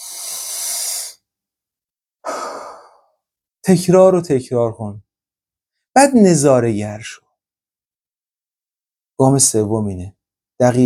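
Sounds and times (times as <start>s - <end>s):
deep breath in a calming exercise: 0.0s - 1.3s, 2.2s - 3.2s
speech: 3.7s - 5.1s, 6.0s - 7.2s, 9.2s - 10.8s.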